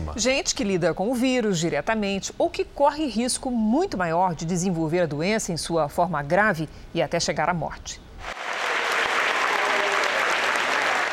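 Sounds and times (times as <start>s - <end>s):
speech: 0.1s - 8.1s
crowd clapping to celebrate vaccination milestone: 8.3s - 11.1s.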